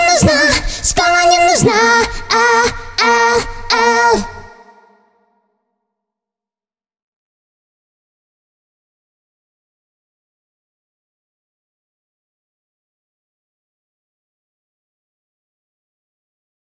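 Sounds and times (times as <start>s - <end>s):
a cappella cover singing: 0.0s - 5.2s.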